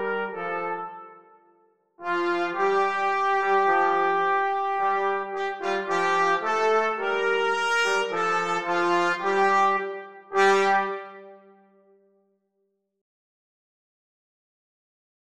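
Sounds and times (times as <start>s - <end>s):
trombone in a trumpet trombone duet: 0.0s - 1.4s, 2.0s - 11.6s
trumpet in a trumpet trombone duet: 0.0s - 12.0s.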